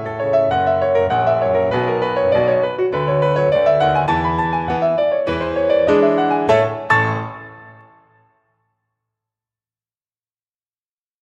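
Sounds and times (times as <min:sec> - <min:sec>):
backing track: 0:00.2 - 0:07.9.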